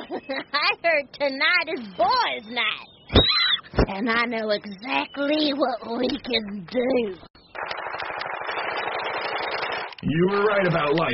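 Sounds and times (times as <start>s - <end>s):
speech: 0.3s - 3.3s, 3.9s - 7.3s, 10.0s - 11.1s
video game machine gun fire: 7.6s - 9.9s.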